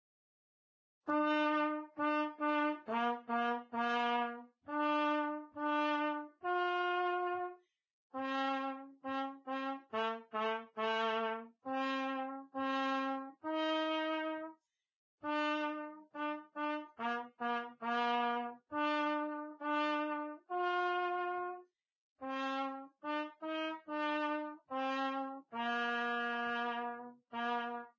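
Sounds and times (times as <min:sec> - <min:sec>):
trumpet: 0:01.0 - 0:14.6, 0:15.2 - 0:27.9.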